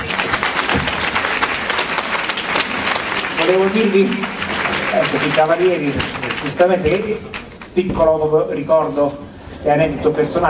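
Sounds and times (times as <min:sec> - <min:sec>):
audience applause: 0:00.0 - 0:07.8
speech: 0:03.5 - 0:04.4, 0:05.0 - 0:10.4.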